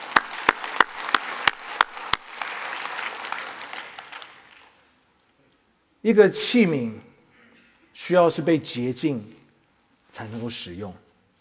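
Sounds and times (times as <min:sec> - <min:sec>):
crowd clapping in unison: 0:00.0 - 0:04.9
loose continuous applause: 0:00.0 - 0:04.9
speech: 0:06.0 - 0:07.1, 0:08.0 - 0:09.4, 0:10.2 - 0:11.0.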